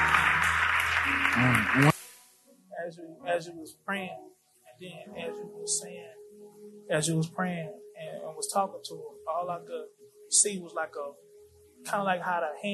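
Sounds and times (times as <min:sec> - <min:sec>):
audience applause: 0:00.0 - 0:02.0
speech: 0:01.4 - 0:01.9, 0:02.9 - 0:12.7.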